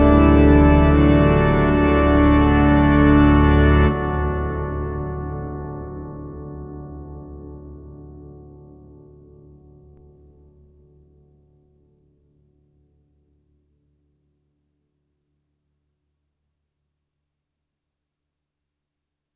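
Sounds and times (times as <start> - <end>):
organ in a hall: 0.0 - 10.3.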